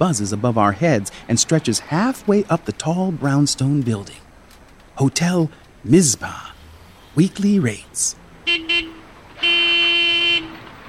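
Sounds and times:
speech: 0.0 - 4.2, 5.0 - 6.5, 7.2 - 8.9
car and truck horns honking under the viaduct: 8.4 - 10.8.

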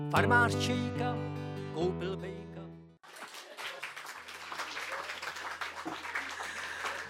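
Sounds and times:
speech: 0.1 - 2.4
audience applause after live song: 3.0 - 7.0.

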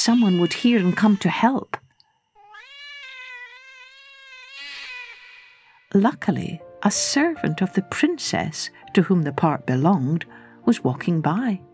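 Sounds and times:
cat screaming: 0.0 - 1.5, 2.4 - 6.0
speech: 0.0 - 1.8, 6.0 - 11.7.

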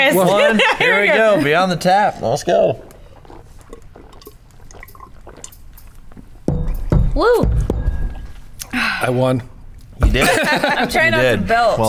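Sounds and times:
speech: 0.0 - 2.9, 7.2 - 7.7, 8.7 - 11.8
laughter: 0.2 - 1.6, 10.0 - 11.2
liquid sloshing: 2.5 - 6.9
person chugging a drink from a glass: 2.6 - 6.5.

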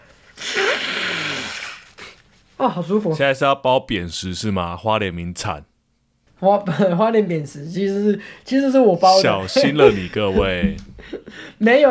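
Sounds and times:
person blowing nose: 0.0 - 2.2
speech: 2.6 - 5.7, 6.4 - 11.8
laughter: 9.1 - 11.4.

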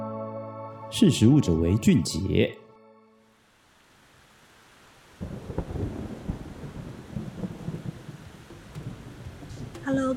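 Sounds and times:
speech: 0.9 - 2.6
heavy rain pouring down: 3.4 - 10.1
rolling thunder: 5.2 - 10.1.

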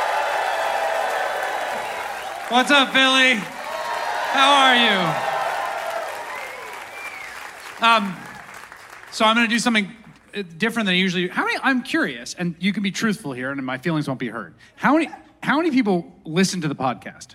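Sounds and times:
live audience applause: 0.0 - 9.7
speech: 2.5 - 3.6, 4.3 - 5.3, 7.8 - 8.2, 9.1 - 17.3.

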